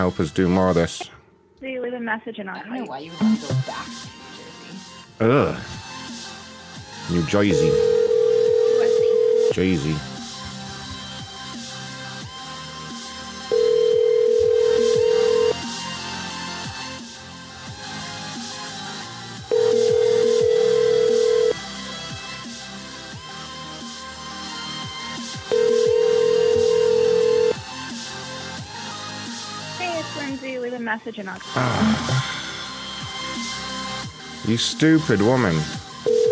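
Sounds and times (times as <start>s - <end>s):
speech: 0.0s - 4.2s, 5.2s - 5.8s, 7.1s - 8.0s, 9.6s - 10.1s, 31.0s - 32.4s, 34.4s - 35.8s
telephone ringback tone on an unanswered call: 7.5s - 9.7s, 13.5s - 15.7s, 19.5s - 21.6s, 25.5s - 27.6s, 36.1s - 36.3s.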